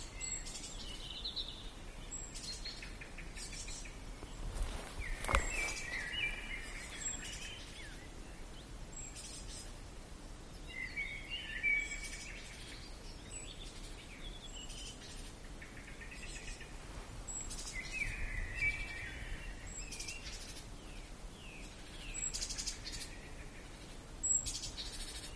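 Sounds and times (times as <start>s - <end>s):
Eurasian blackbird singing fluty whistled phrases: 0.0s - 9.7s, 10.5s - 25.3s.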